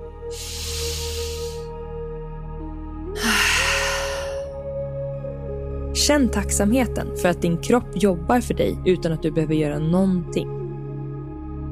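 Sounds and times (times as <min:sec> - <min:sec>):
soft sustained music: 0:00.0 - 0:11.6
deep breath in and out: 0:00.3 - 0:01.7, 0:03.2 - 0:04.6
speech: 0:06.1 - 0:10.6.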